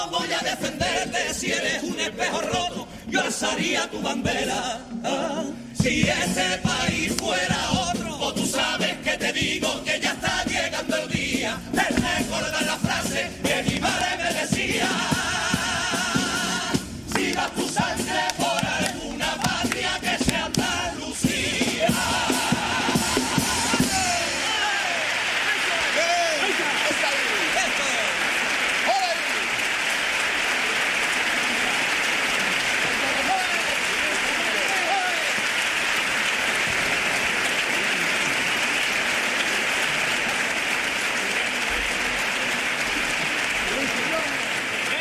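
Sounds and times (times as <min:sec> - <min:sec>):
speech: 0:00.0 - 0:15.1
audience applause at a carnival contest: 0:13.9 - 0:20.9, 0:21.8 - 0:45.0
people cheering: 0:21.8 - 0:45.0.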